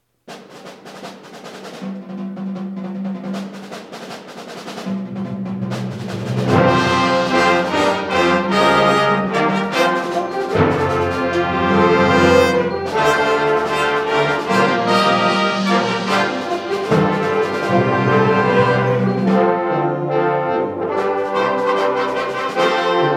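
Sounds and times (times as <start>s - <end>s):
triumphant fanfare by a concert band: 5.1s - 23.1s.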